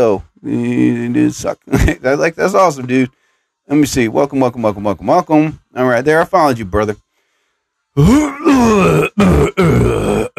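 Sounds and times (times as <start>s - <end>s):
speech: 0.0s - 7.0s, 8.0s - 10.3s
person clearing throat: 8.0s - 10.3s.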